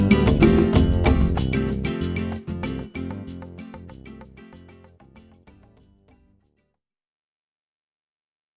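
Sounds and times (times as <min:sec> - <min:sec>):
Latin style guitar: 0:00.0 - 0:06.6.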